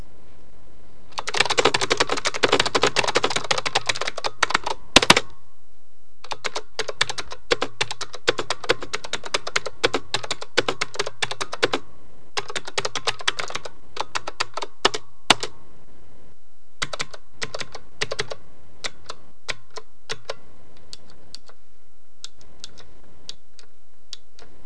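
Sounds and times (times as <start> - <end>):
typing: 1.2 - 5.2, 6.2 - 11.8, 12.4 - 15.5, 16.8 - 20.4.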